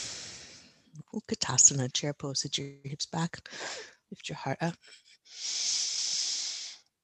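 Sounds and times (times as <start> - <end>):
audible exhale during yoga: 0.0 - 0.6, 3.5 - 3.9, 5.4 - 6.8
speech: 1.2 - 5.8.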